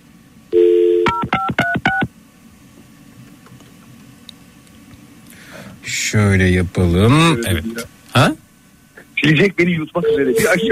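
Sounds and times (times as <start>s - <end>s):
telephone dial tone: 0.5s - 1.4s
speech: 6.1s - 8.4s, 9.2s - 10.6s.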